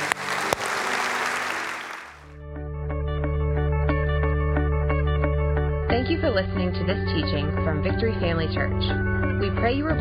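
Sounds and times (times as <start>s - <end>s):
crowd clapping: 0.0s - 2.4s
bright keyboard music with a low droning bass: 2.3s - 10.0s
speech: 6.1s - 10.0s.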